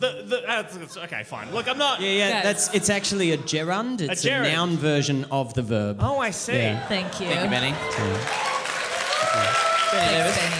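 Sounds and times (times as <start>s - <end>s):
speech: 0.0s - 8.5s, 9.4s - 10.5s
audience applause: 6.7s - 10.5s.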